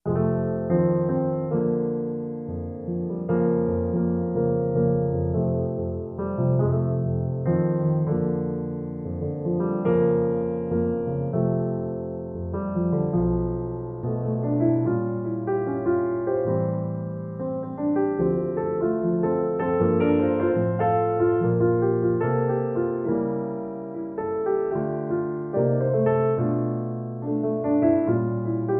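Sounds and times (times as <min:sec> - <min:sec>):
solo piano: 0:00.0 - 0:28.7.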